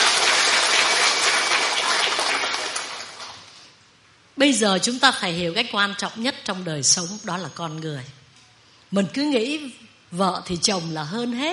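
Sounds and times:
crowd applause: 0:00.0 - 0:03.6
speech: 0:04.4 - 0:08.2, 0:08.9 - 0:11.5.

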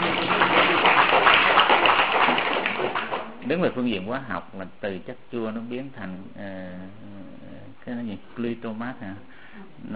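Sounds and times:
crowd applause: 0:00.0 - 0:03.3
speech: 0:03.5 - 0:07.1, 0:07.9 - 0:09.9.

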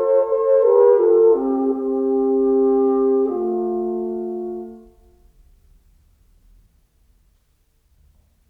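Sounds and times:
duo for two horns playing larghetto: 0:00.0 - 0:05.1.

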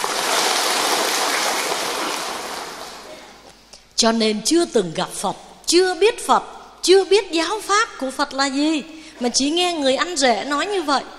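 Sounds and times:
applause: 0:00.0 - 0:03.1
speech: 0:04.0 - 0:11.1.

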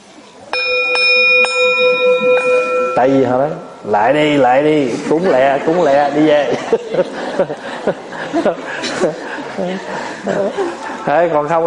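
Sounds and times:
temple bell struck with a wooden mallet: 0:00.5 - 0:04.7
speech: 0:03.0 - 0:11.6
laughter: 0:04.8 - 0:11.6.

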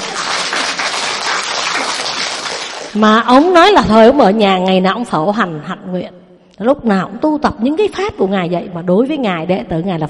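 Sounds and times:
audience clapping at a Buddhist dharma talk: 0:00.0 - 0:03.0
speech: 0:02.9 - 0:10.0.

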